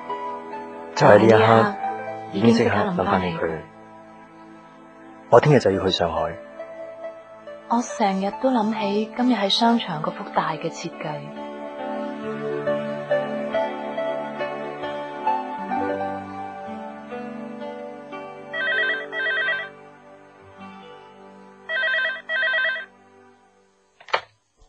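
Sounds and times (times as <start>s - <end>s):
soft sustained music: 0.0s - 21.9s, 22.9s - 23.8s
speech: 1.0s - 3.7s, 5.3s - 6.5s, 7.7s - 11.4s
office telephone ringing: 18.5s - 19.7s, 21.7s - 22.9s.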